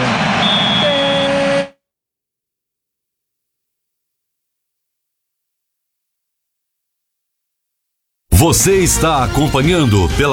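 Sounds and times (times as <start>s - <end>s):
crowd noise at the arena, Grêmio versus Internacional: 0.0s - 1.7s
referee's whistle ending the first half of a Copa do Brasil match: 0.0s - 1.8s
speech: 8.4s - 10.3s.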